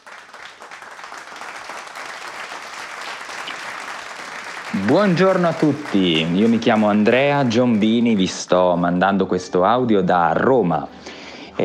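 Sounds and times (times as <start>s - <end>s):
crowd applauding: 0.0s - 8.8s
speech: 4.8s - 11.1s.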